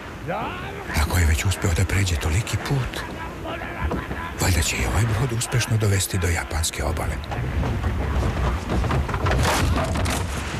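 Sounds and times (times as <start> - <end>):
stormy wind roaring: 0.0 - 10.5
speech: 0.2 - 8.7.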